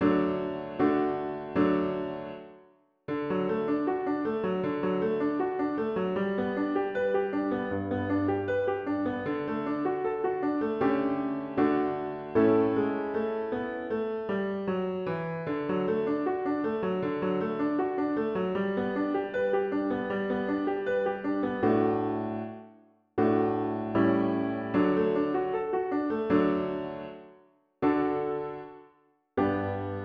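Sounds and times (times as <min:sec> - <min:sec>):
piano: 0:00.0 - 0:30.0.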